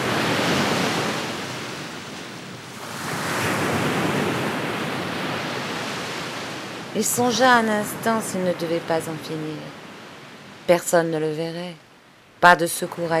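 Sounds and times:
waves crashing on the shore: 0:00.0 - 0:11.0
speech: 0:07.0 - 0:09.8, 0:10.7 - 0:11.8, 0:12.4 - 0:13.1.

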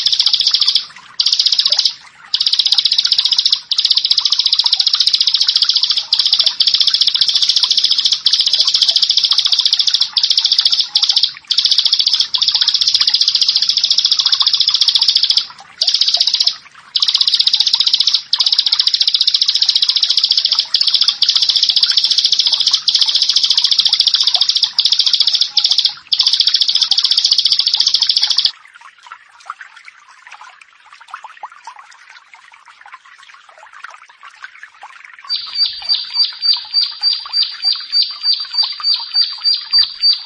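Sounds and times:
Bar-winged prinia buzzy trill: 0:00.0 - 0:28.5, 0:35.3 - 0:40.2.

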